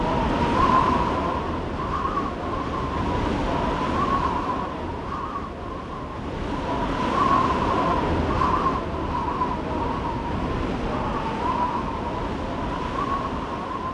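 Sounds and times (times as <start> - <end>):
strong wind: 0.0 - 13.9.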